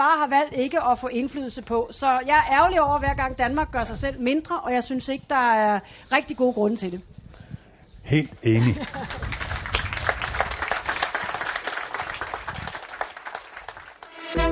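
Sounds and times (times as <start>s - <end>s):
speech: 0.0s - 7.2s, 8.1s - 9.4s
laughter: 8.5s - 9.3s
audience applause on Bornholm: 9.0s - 14.4s.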